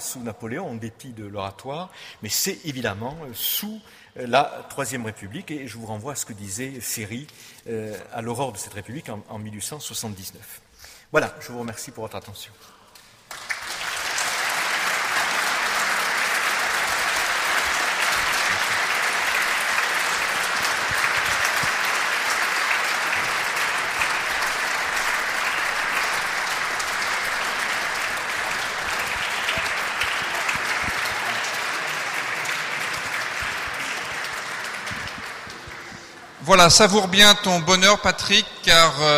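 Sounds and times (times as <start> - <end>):
speech: 0.1 - 12.8, 36.5 - 39.1
audience applauding after a sermon: 13.2 - 36.8.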